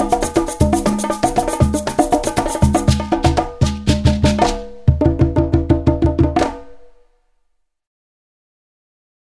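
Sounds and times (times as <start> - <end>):
joyful tam-tam: 0.0 - 7.0.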